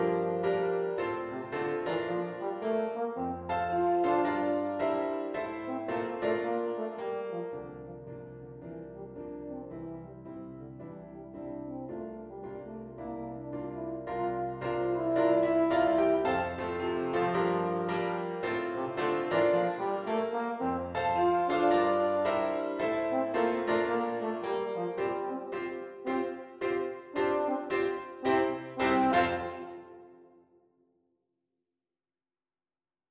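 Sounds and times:
euphonium melody: 0.0 - 8.0, 11.9 - 30.3.

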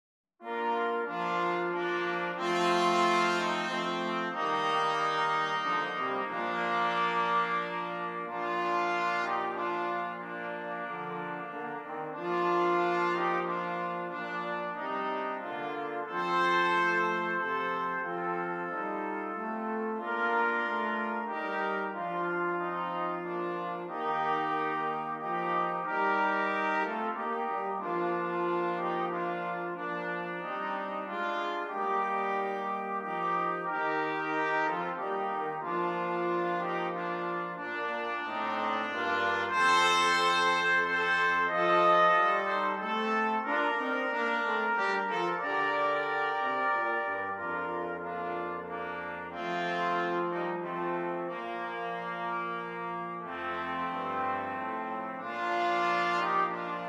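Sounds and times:
brass quartet playing: 0.4 - 56.8.

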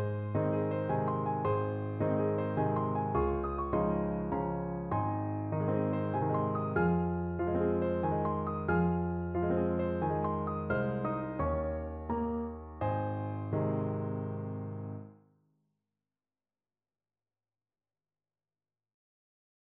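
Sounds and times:
intermediate piano duet playing a waltz: 0.0 - 15.1.

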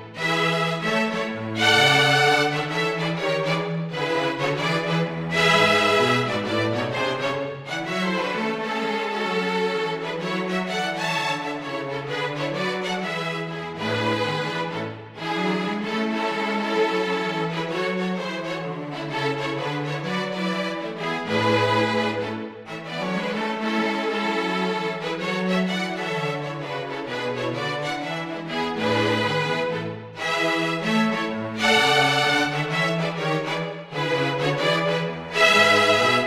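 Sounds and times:
string quartet playing jazz carol: 0.0 - 36.2.

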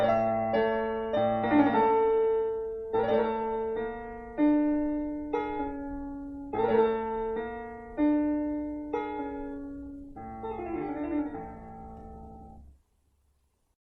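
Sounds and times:
piano prelude: 0.0 - 12.8.

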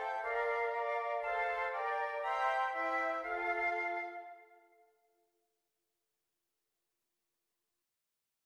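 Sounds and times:
flute quartet playing: 0.0 - 4.6.

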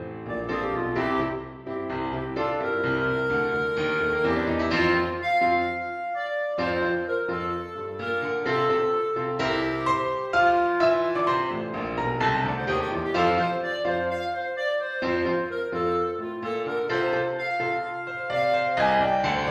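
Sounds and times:
piano: 0.0 - 19.4
rock clarinet: 0.0 - 19.4.

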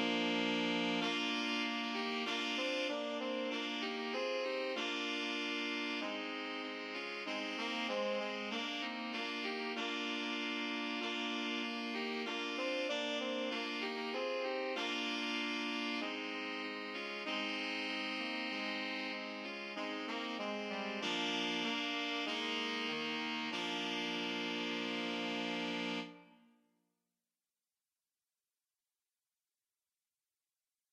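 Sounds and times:
saxophone trio playing: 0.0 - 26.4.

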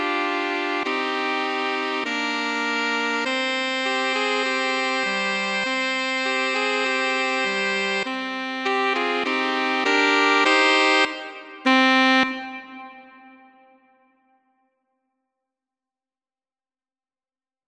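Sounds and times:
saxophone trio playing: 0.0 - 13.7.

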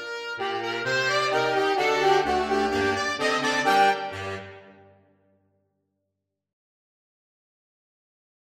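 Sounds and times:
saxophone quartet playing: 0.0 - 5.2.

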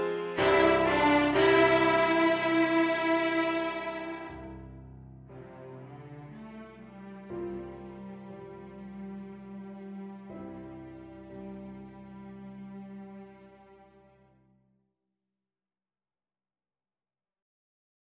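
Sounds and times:
cello: 0.4 - 14.3.

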